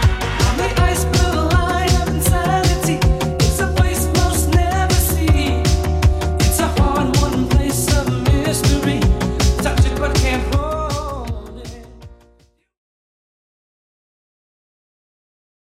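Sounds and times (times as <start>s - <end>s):
80s drum beat: 0.0s - 12.2s.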